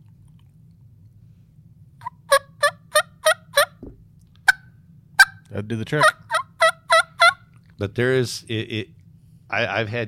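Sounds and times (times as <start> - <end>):
single-reed elk call imitating turkey yelps: 2.0 - 3.8, 6.0 - 7.5
speech: 5.6 - 6.2, 7.8 - 10.0.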